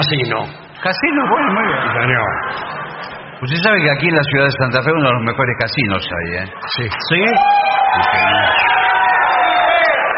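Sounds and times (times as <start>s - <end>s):
speech: 0.0s - 2.8s, 3.4s - 8.7s
audience applauding: 6.6s - 10.1s.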